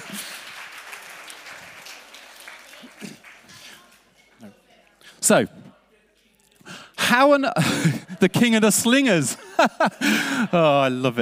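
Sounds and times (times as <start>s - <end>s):
audience applause: 0.0s - 4.1s
speech: 5.3s - 5.6s, 7.2s - 11.2s
laughter: 9.3s - 11.1s.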